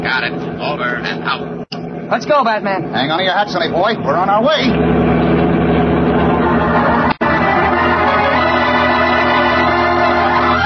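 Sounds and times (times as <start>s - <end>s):
powerful car engine roaring: 0.0s - 10.6s
speech: 0.1s - 5.2s.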